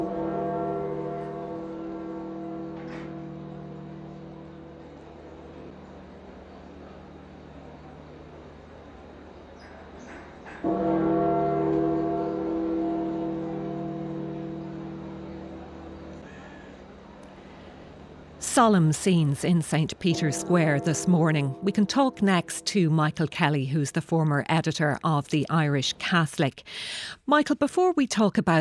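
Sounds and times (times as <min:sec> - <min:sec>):
church bells tolling in St. Peter's Square: 0:00.0 - 0:08.2, 0:10.5 - 0:17.7, 0:18.5 - 0:25.0
speech: 0:18.6 - 0:28.6.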